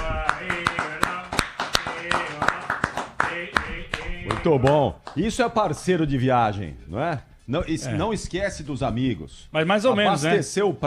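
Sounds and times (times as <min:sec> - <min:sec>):
audience applause: 0:00.0 - 0:05.2
speech: 0:04.4 - 0:10.8.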